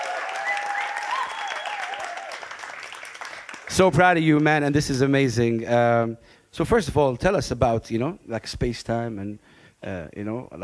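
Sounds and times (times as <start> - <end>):
audience applause: 0.0 - 4.7
speech: 3.7 - 10.6.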